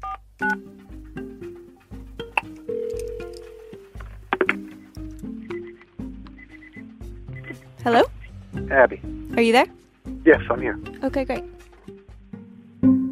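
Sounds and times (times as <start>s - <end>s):
telephone keypad dialing tones: 2.6s - 4.0s
speech: 7.9s - 11.5s.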